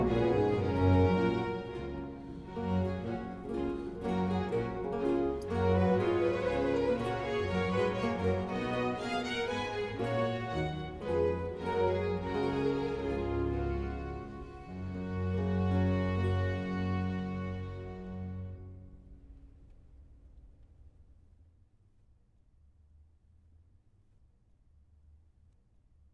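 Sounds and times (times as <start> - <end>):
minuet: 0.0 - 18.9.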